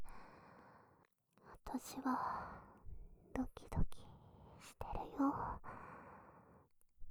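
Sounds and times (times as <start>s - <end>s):
person whispering: 1.6s - 2.5s, 3.4s - 4.0s, 4.6s - 5.7s.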